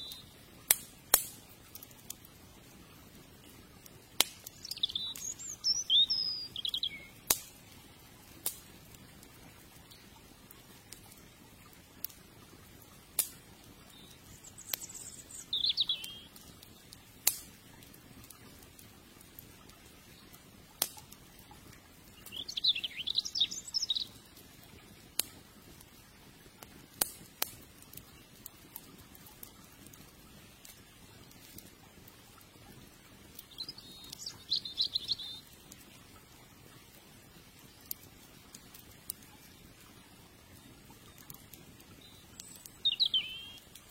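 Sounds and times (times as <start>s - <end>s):
riverside campfire crackling: 0.0s - 43.8s
bird chirps: 4.6s - 7.2s, 13.9s - 16.3s, 22.2s - 24.2s, 33.5s - 35.4s, 42.0s - 43.6s.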